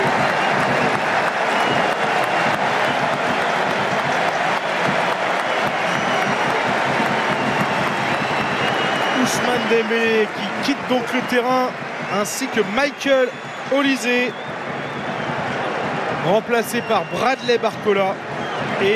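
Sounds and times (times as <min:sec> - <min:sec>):
stadium crowd ovation at a France national team football match: 0:00.0 - 0:18.9
speech: 0:09.7 - 0:14.6, 0:16.2 - 0:18.9.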